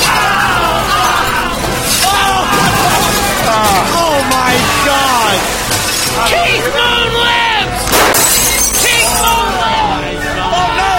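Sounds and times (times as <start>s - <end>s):
people yelling and whooping: 0.0s - 5.4s, 6.1s - 7.9s, 8.6s - 10.9s
big mallet smashing a pinball machine: 1.6s - 6.3s, 7.9s - 9.3s.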